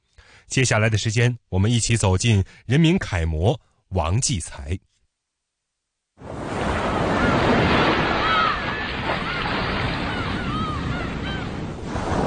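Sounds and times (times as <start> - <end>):
speech: 0.5 - 4.9
sea waves on Kaishan Island shore: 6.2 - 12.2.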